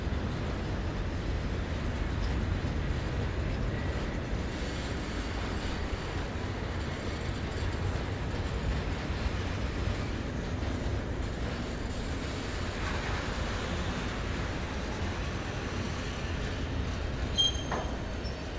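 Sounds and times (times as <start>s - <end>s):
cargo train tank car passing slowly close in port railroad yard: 0.0s - 18.5s
shunting squeal in port railroad yard: 17.3s - 18.4s.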